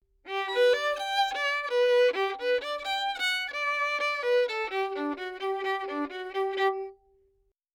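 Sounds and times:
dry violin melody in G major: 0.3s - 7.2s.

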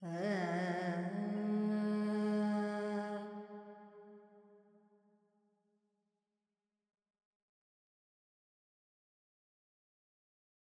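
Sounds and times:
woman singing Carnatic pentatonic alap in G: 0.0s - 3.6s.

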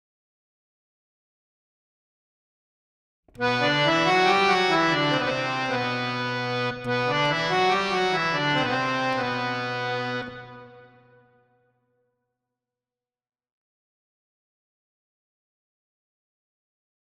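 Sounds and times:
harmonium with reverb: 3.3s - 11.5s.

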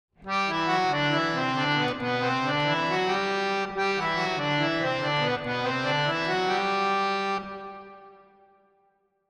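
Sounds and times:
harmonium with reverb: 0.2s - 8.6s.

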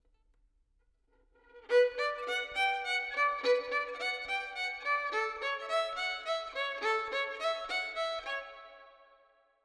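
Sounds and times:
violin with reverb: 1.5s - 9.1s.

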